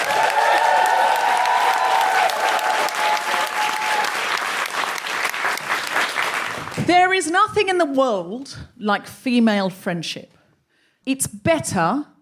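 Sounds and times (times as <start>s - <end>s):
audience whooping and cheering: 0.0s - 4.5s
audience applause welcoming a comedian: 0.0s - 6.9s
speech: 7.2s - 10.4s, 11.0s - 12.1s.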